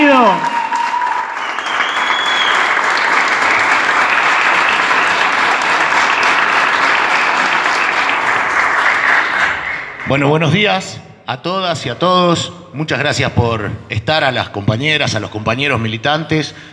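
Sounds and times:
audience applause: 0.0s - 10.1s
speech: 10.1s - 16.7s.

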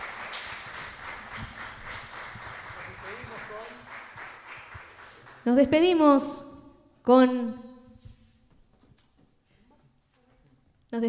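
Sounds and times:
audience applause: 0.0s - 5.5s
speech: 5.4s - 6.5s, 7.1s - 7.6s.

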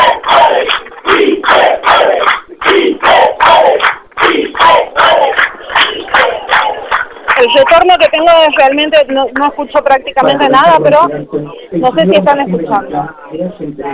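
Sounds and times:
crowd applause for the entrance of the president: 0.0s - 9.5s
crowd cheering for the entrance of the president: 0.0s - 10.7s
speech: 7.8s - 13.9s.

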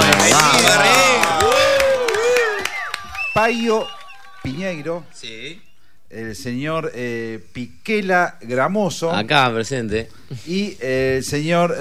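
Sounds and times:
audience applause: 0.0s - 5.0s
loud overlapping crowd cheers and whoops: 0.0s - 5.0s
speech: 3.4s - 11.7s.

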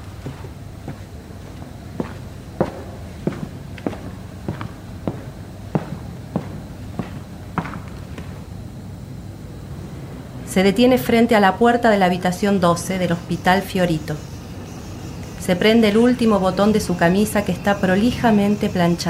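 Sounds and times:
firm heavy footsteps at walking pace: 0.0s - 8.6s
low hum: 0.0s - 19.0s
speech: 10.6s - 14.3s, 15.4s - 19.0s.

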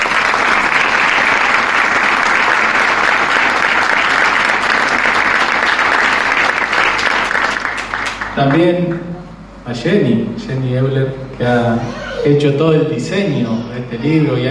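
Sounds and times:
audience applause: 0.0s - 8.6s
speech: 8.4s - 9.1s, 9.7s - 14.4s.

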